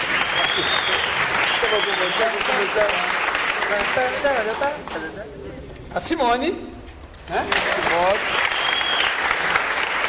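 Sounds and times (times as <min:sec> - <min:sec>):
applause: 0:00.0 - 0:05.0, 0:07.3 - 0:10.0
speech: 0:02.0 - 0:08.6.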